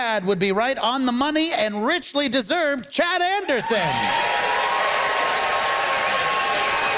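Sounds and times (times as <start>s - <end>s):
speech: 0.0s - 4.4s
crowd applauding: 3.6s - 6.9s.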